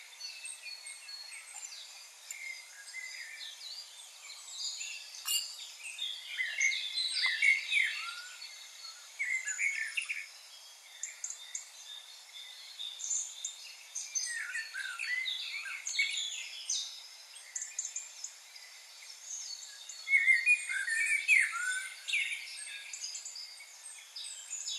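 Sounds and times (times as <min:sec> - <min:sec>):
common blackbird Turdus merula warbling fluty phrases: 0:00.0 - 0:24.7.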